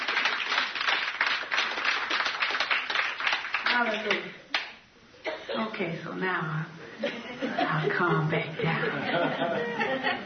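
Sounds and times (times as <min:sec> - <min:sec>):
audience clapping hands: 0:00.0 - 0:04.8
speech: 0:03.8 - 0:04.4, 0:05.6 - 0:10.2
laughter: 0:07.0 - 0:10.2.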